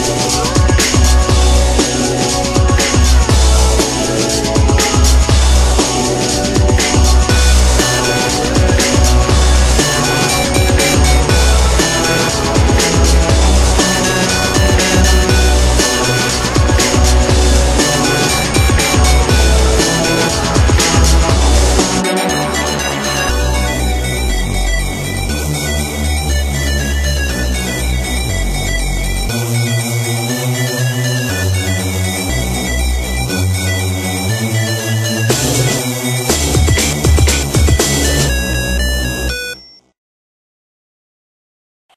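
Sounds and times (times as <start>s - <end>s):
drum and bass remix: 0.0s - 39.6s.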